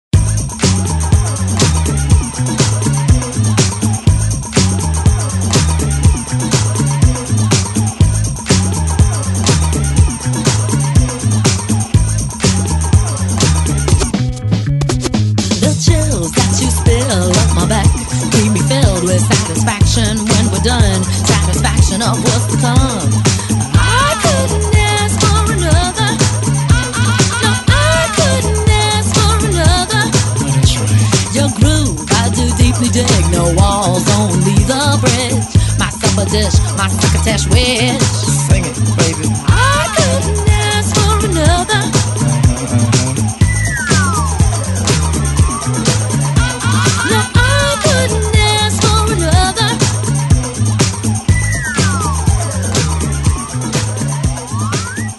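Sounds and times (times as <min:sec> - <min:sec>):
1990s DJ intro music: 0:00.2 - 0:55.1.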